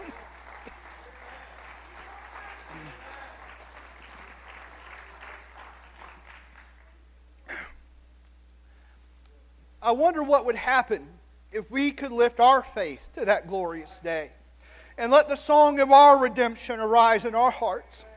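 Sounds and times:
audience hand clapping: 0:00.0 - 0:07.0
low steady hum: 0:00.0 - 0:18.1
speech: 0:09.8 - 0:14.4, 0:15.0 - 0:18.1.

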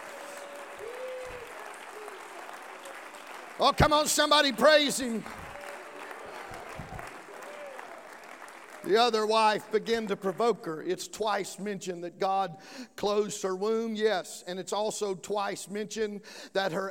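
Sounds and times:
people clapping hands: 0:00.0 - 0:10.7
speech: 0:03.6 - 0:05.4, 0:08.9 - 0:16.8.

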